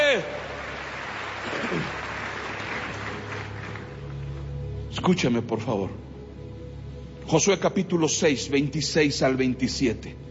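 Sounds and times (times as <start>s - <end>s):
audience applause: 0.0s - 4.3s
speech: 5.0s - 6.1s, 7.3s - 10.3s.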